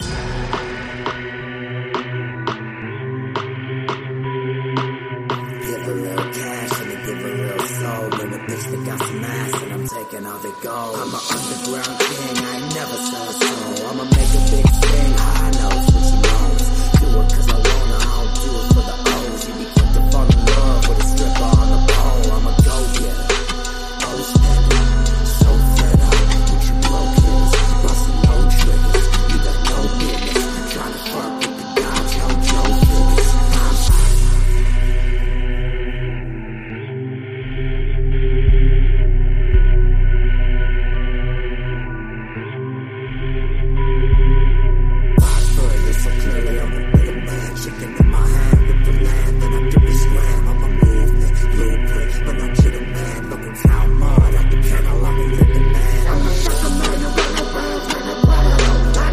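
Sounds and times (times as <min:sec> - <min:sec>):
remix music: 0:00.0 - 0:59.1.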